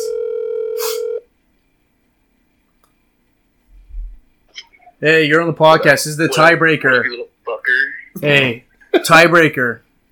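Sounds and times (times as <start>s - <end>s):
telephone being dialed, loud steady electronic tone: 0.0s - 1.2s
speech: 5.0s - 9.8s.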